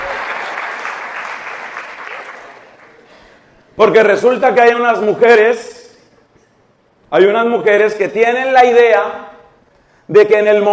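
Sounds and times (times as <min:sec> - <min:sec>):
men in audience applauding: 0:00.0 - 0:03.1
speech: 0:03.8 - 0:05.7, 0:07.1 - 0:09.2, 0:10.1 - 0:10.7.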